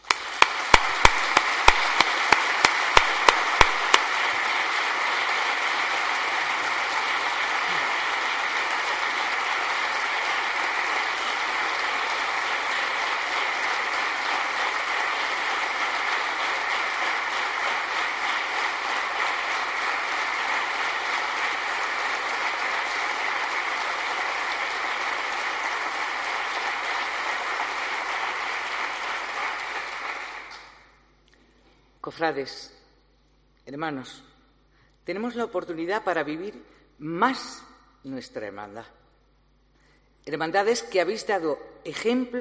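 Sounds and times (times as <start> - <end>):
audience applause: 0.0 - 30.8
speech: 32.1 - 32.8, 33.7 - 34.3, 35.1 - 39.0, 40.2 - 42.3.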